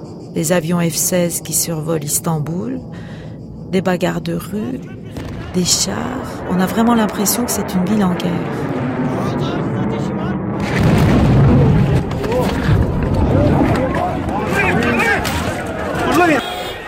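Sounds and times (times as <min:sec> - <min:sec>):
speech: 0:00.4 - 0:08.8
bomb explosion: 0:04.8 - 0:16.0.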